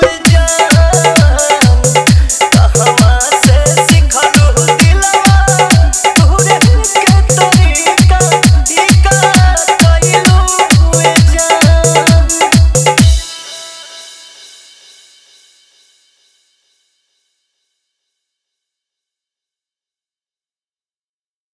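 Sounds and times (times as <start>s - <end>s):
sad DJ remix with dholak bass: 0.0s - 14.4s.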